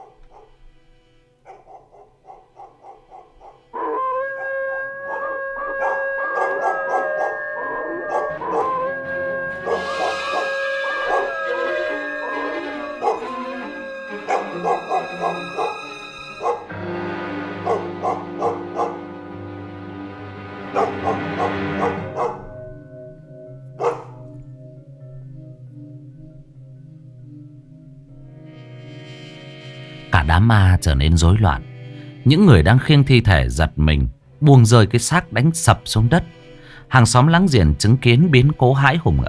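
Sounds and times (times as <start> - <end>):
pack of village dogs barking and howling: 0.0 - 0.5, 1.4 - 19.5, 20.6 - 23.0, 23.6 - 24.4
speech: 30.4 - 39.2.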